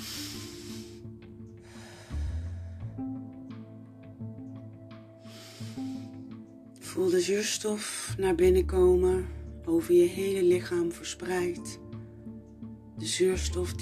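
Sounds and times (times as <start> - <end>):
deep breathing during a live meditation session: 0.0 - 3.2, 5.2 - 6.5
soft sustained musical tones: 0.0 - 13.8
speech: 7.0 - 11.8, 13.0 - 13.8.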